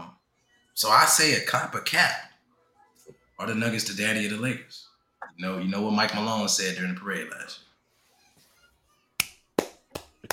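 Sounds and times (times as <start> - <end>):
speech: 0.8 - 2.3, 3.4 - 7.7
hand clapping: 9.2 - 10.3.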